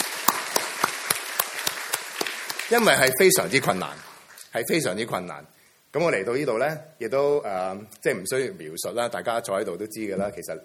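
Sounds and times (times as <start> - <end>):
church congregation clapping honoring children's workers and parents: 0.0 - 4.6
soft hiss: 0.0 - 10.6
speech: 2.7 - 10.6.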